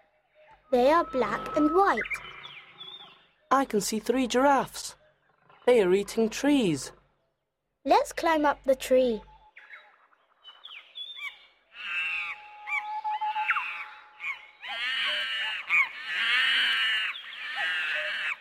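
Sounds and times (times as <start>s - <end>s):
speech: 0.7s - 2.3s, 3.5s - 5.0s, 5.6s - 7.0s, 7.8s - 9.3s
troop of monkeys hooting and squawking: 0.8s - 3.1s, 11.2s - 18.3s.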